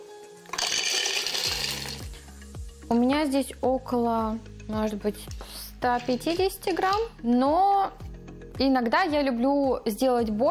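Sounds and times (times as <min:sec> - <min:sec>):
blender grinding peanuts: 0:00.5 - 0:02.1
speech: 0:02.9 - 0:08.0, 0:08.6 - 0:10.4.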